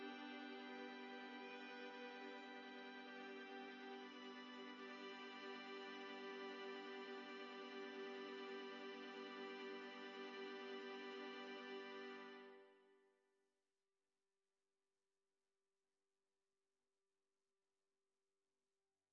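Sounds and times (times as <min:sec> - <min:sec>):
viola quartet: 0:00.0 - 0:12.7.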